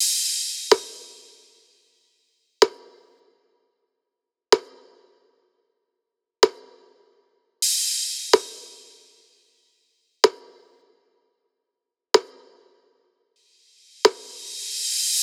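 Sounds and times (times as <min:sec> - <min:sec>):
percussion loop at 126: 0:00.0 - 0:01.7, 0:07.6 - 0:09.5, 0:13.5 - 0:15.2.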